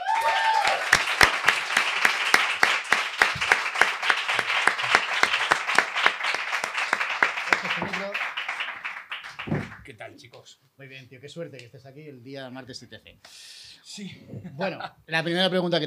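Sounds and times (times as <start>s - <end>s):
audience applause welcoming a guest: 0.0s - 9.9s
speech: 10.2s - 13.4s, 14.0s - 15.8s.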